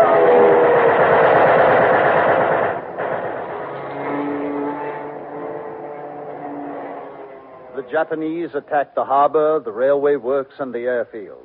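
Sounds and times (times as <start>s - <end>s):
fighter plane engine roaring while diving to strafe: 0.0s - 8.7s
speech: 7.9s - 11.4s.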